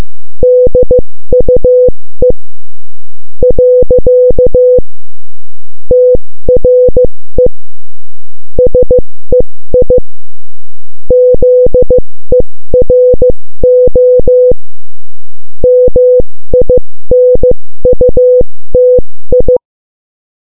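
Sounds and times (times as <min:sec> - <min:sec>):
morse code beeps: 0:00.4 - 0:02.4, 0:03.4 - 0:04.8, 0:05.9 - 0:07.5, 0:08.6 - 0:10.0, 0:11.1 - 0:14.6, 0:15.6 - 0:19.6.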